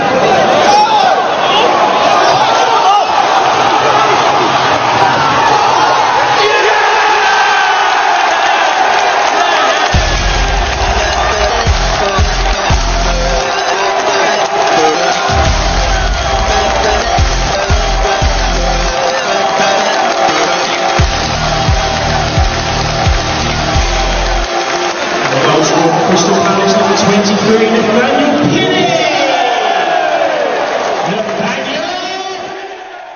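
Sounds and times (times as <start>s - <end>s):
football crowd roaring celebrating a goal against Norwich: 0.0s - 33.1s
electronic dance track with heavy pulsing bass beat: 10.0s - 25.2s.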